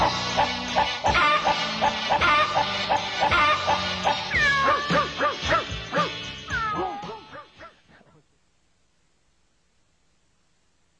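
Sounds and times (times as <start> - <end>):
animal barking: 0.4 - 6.2, 6.8 - 8.0.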